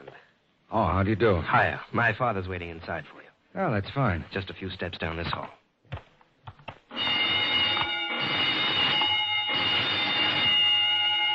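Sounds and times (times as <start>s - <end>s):
speech: 0.7s - 5.6s
burglar alarm ringing: 6.9s - 11.3s.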